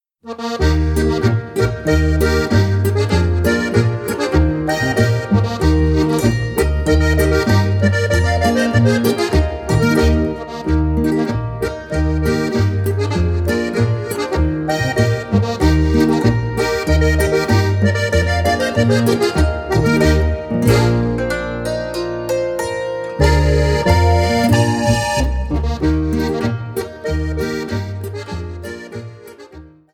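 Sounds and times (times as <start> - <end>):
Bavarian boarischer folk dance music: 0.2 - 29.9.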